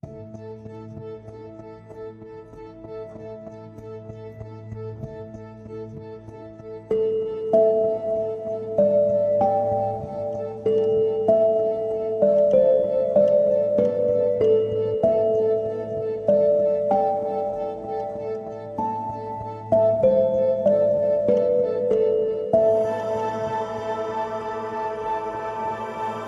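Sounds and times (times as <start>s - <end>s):
dreamy bells: 6.9s - 26.2s.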